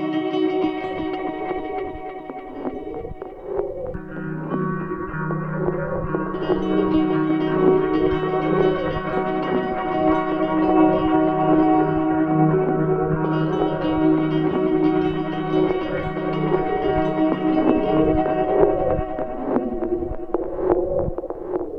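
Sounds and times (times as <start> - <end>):
shimmering D#3 tone: 0.1 - 21.6.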